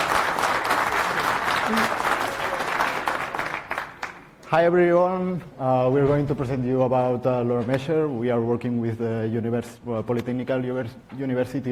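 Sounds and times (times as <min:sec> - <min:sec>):
audience applause: 0:00.0 - 0:04.3
speech: 0:04.5 - 0:11.6.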